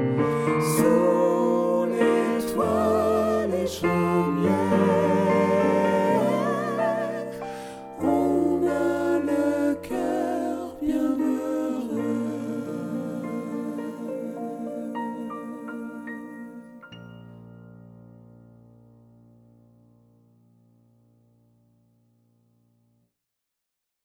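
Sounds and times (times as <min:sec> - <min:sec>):
tenors and basses singing gospel: 0:00.0 - 0:16.8.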